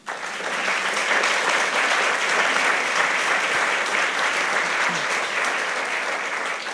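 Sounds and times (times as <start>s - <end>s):
audience applause: 0.0s - 6.7s.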